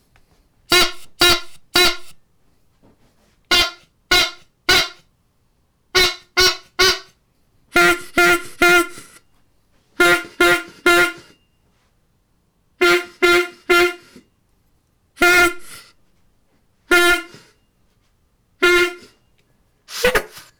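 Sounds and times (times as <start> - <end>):
squeeze horns honking: 0.7 - 2.2, 3.5 - 5.0, 6.0 - 9.2, 10.0 - 11.4, 12.8 - 14.2, 15.2 - 15.9, 16.9 - 17.5, 18.6 - 19.2.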